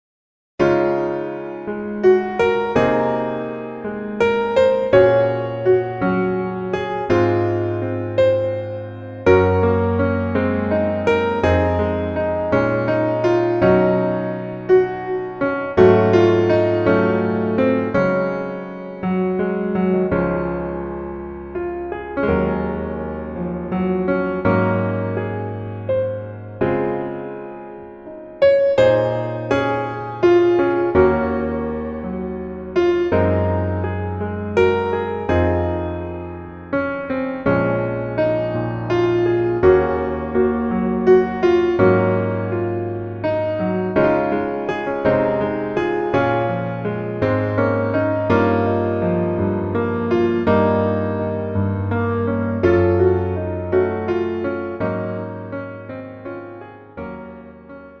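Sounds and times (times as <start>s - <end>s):
piano melody backing track one key lower: 0.6s - 57.9s.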